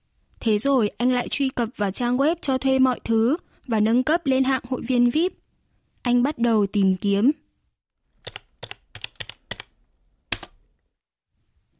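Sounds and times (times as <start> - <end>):
speech: 0.4 - 5.4, 6.0 - 7.4
typing on a computer keyboard: 8.1 - 10.6.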